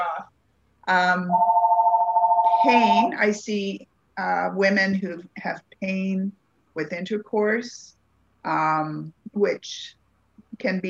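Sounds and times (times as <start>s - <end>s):
speech: 0.9s - 1.6s, 2.6s - 10.0s, 10.6s - 10.8s
telephone warbling electronic ring tone: 1.3s - 3.2s.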